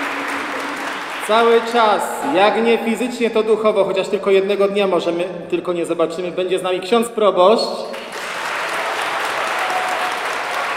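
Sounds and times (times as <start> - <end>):
crowd applause: 0.0 - 2.4, 7.9 - 10.7
speech: 1.3 - 8.0.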